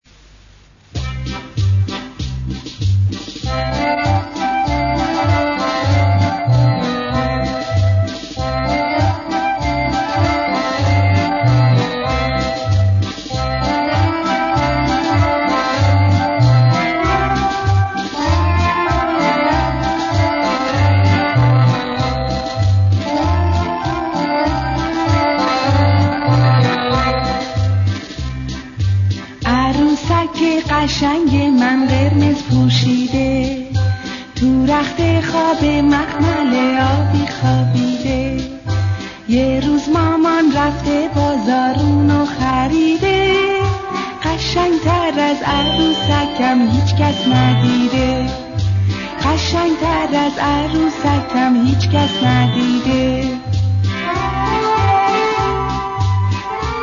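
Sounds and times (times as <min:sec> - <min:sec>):
song: 0:01.0 - 0:56.8.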